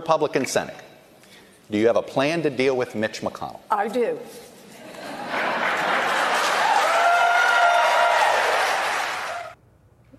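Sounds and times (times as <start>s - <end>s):
speech: 0.1s - 0.9s, 1.7s - 4.5s
laughter: 4.8s - 6.7s
audience applause: 5.3s - 9.6s.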